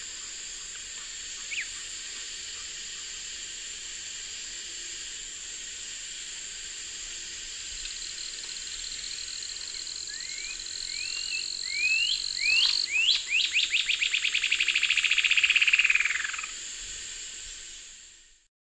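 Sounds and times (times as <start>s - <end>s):
bird pulsed trill: 1.4s - 1.8s, 8.0s - 16.6s.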